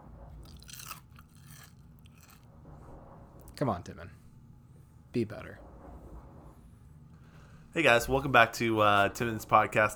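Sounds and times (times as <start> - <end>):
someone chomping on chips: 0.4 - 2.5
speech: 3.6 - 4.2, 5.2 - 5.7, 7.7 - 9.9.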